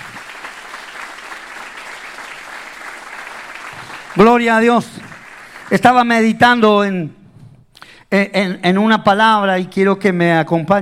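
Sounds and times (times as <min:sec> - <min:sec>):
audience applause: 0:00.0 - 0:06.1
speech: 0:04.2 - 0:05.0, 0:05.7 - 0:07.2, 0:08.1 - 0:10.7.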